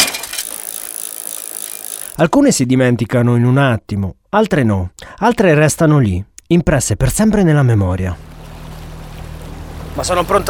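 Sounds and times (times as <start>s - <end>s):
bicycle falling over: 0.0s - 2.2s
speech: 2.2s - 8.4s, 10.0s - 10.4s.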